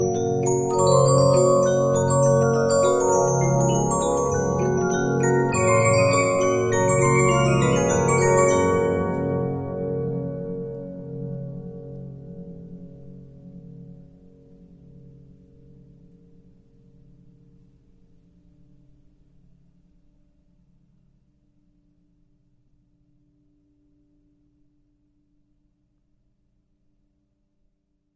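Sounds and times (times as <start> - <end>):
Regina 15-inch disc music box: 0.0 - 9.8.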